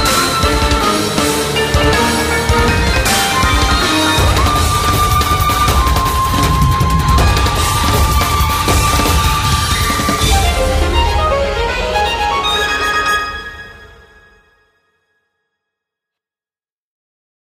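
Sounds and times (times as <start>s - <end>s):
battle background music: 0.0s - 13.8s.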